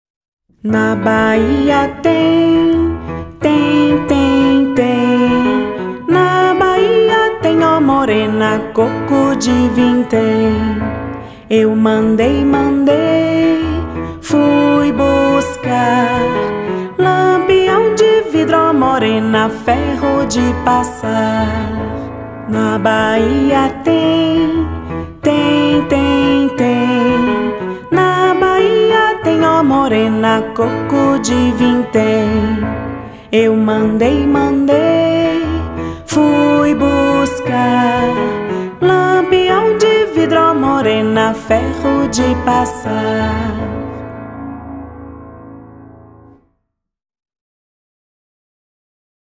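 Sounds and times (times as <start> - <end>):
vocals: 0.6 - 44.4.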